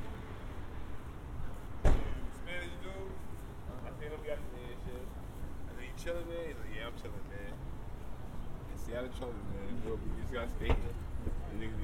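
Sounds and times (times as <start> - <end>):
traffic rumble: 0.0 - 11.8
knock or door-like thud: 1.8 - 2.2
people talking: 2.3 - 5.1, 5.7 - 7.6, 8.7 - 11.8.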